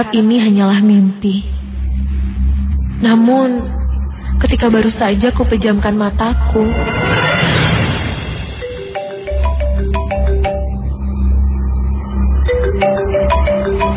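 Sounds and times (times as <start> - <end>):
speech: 0.0 - 1.6, 3.0 - 3.8, 4.4 - 7.0
steady low hum: 0.0 - 13.9
mobile phone ringtone for an incoming call: 8.6 - 11.1, 12.5 - 13.9.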